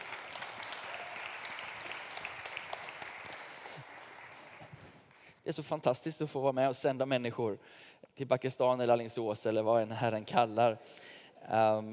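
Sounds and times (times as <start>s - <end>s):
audience applause: 0.0s - 5.1s
speech: 5.5s - 11.9s.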